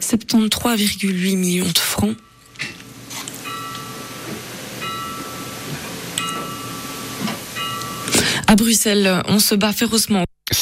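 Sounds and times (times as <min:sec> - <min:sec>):
speech: 0:00.1 - 0:02.3, 0:08.5 - 0:10.6
hiss: 0:01.3 - 0:09.2
bell ringing: 0:02.1 - 0:08.6.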